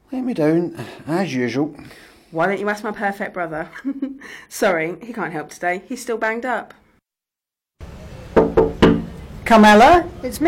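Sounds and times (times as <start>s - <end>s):
speech: 0.1s - 6.8s, 9.5s - 10.4s
knocking on a door: 8.3s - 9.2s.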